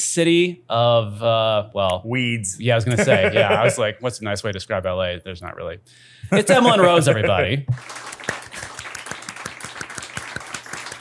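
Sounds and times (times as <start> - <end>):
speech: 0.2 - 8.4
laughter: 2.9 - 3.8, 6.3 - 8.8
studio audience applause: 7.8 - 10.9.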